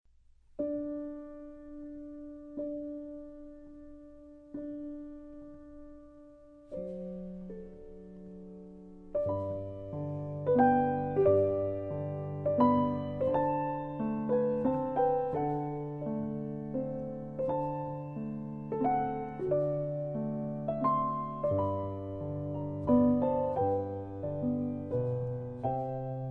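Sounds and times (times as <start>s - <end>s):
piano: 0.1s - 26.2s.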